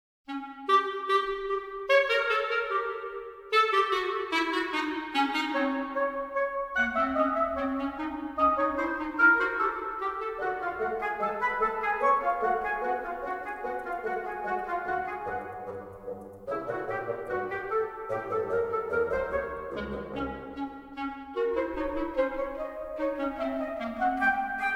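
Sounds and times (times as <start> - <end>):
orchestral wind instruments: 0.3 - 24.7
orchestral percussion: 15.2 - 17.4.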